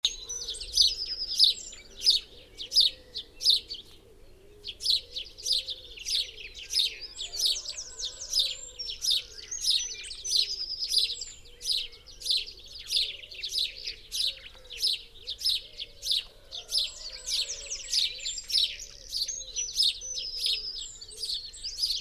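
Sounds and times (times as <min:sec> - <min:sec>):
house sparrow chirping: 0:00.0 - 0:04.0, 0:04.6 - 0:22.0.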